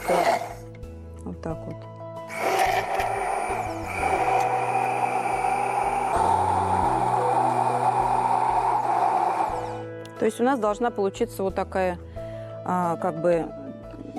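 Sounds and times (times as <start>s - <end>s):
electric blender whipping oil into emulsion: 0.0s - 0.7s, 2.3s - 9.9s
speech: 10.2s - 13.6s.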